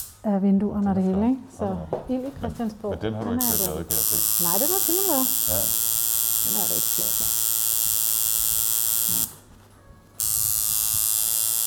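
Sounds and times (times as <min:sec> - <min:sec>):
speech: 0:00.2 - 0:07.4
tattoo machine buzzing: 0:03.4 - 0:09.4, 0:10.2 - 0:11.6.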